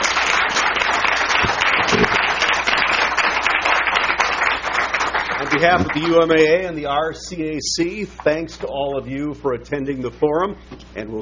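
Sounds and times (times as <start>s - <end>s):
crowd applause: 0.0s - 6.7s
speech: 5.6s - 11.2s.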